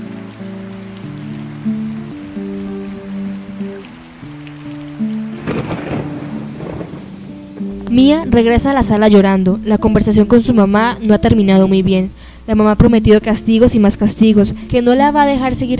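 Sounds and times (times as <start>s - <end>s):
rain: 0.0s - 15.7s
approaching thunderstorm: 5.4s - 8.1s
speech: 8.0s - 15.7s.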